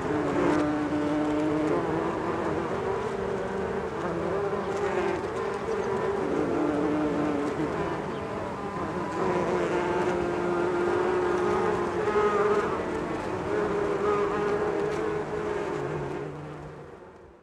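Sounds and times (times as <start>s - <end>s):
bee buzzing: 0.0s - 17.1s.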